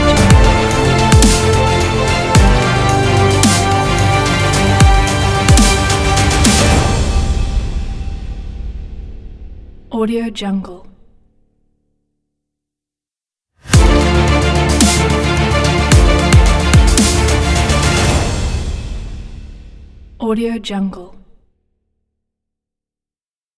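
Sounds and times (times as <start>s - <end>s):
epic cinematic trailer logo music: 0.0s - 9.9s, 13.7s - 20.2s.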